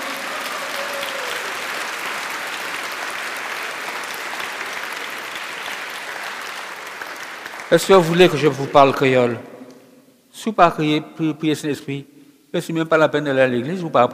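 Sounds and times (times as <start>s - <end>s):
church congregation applauding to acclaim the Holy Spirit: 0.0s - 9.5s
speech: 7.7s - 9.5s, 10.4s - 14.1s.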